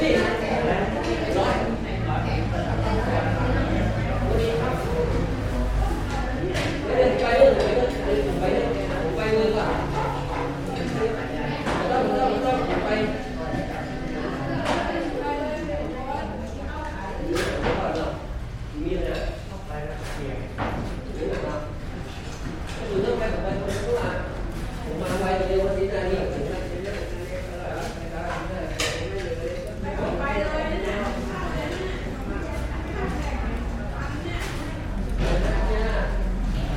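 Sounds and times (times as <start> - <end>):
people chattering in a Chiang Mai restaurant: 0.0 - 36.7.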